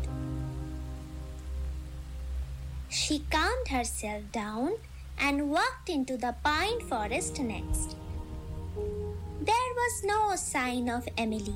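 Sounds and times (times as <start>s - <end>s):
heavy rain: 0.0s - 4.4s, 6.6s - 11.5s
speech: 2.9s - 8.0s, 9.9s - 11.5s.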